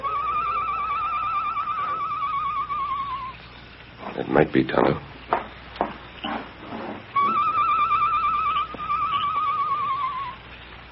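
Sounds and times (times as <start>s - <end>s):
night bird's long warbling whistled call with fast trill: 0.0s - 3.5s, 7.1s - 10.4s
speech: 4.2s - 5.1s.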